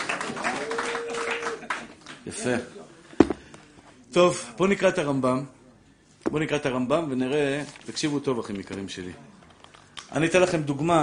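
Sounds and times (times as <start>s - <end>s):
audience applause: 0.0s - 2.2s
speech: 2.3s - 2.8s, 4.2s - 5.6s, 6.2s - 9.4s, 10.1s - 11.0s.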